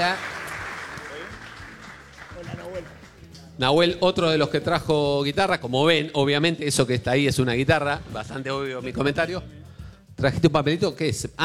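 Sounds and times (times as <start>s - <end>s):
speech: 0.0s - 0.3s, 2.4s - 3.0s, 3.6s - 9.6s, 10.2s - 11.4s
audience applause: 0.0s - 3.2s.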